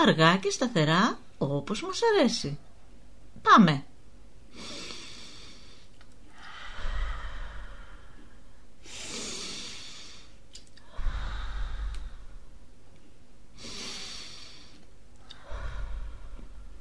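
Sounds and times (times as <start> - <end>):
speech: 0.0 - 2.7, 3.4 - 3.9
slow breathing exercise, inhaling through nose and exhaling through mouth: 4.5 - 12.7, 13.5 - 16.7.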